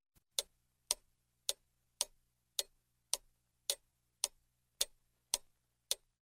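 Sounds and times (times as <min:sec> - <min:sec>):
large clock ticking: 0:00.3 - 0:06.2.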